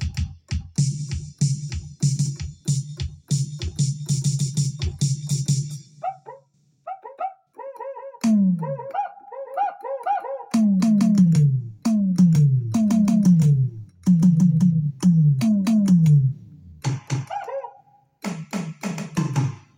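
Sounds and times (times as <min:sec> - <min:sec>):
keyboard playing samples from Roland drum kits: 0:00.0 - 0:06.0, 0:08.2 - 0:09.0, 0:10.5 - 0:17.4, 0:18.2 - 0:19.7.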